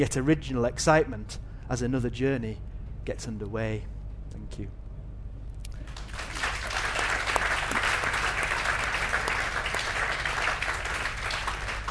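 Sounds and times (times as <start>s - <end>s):
speech: 0.0s - 4.8s
audience applause: 5.9s - 11.8s.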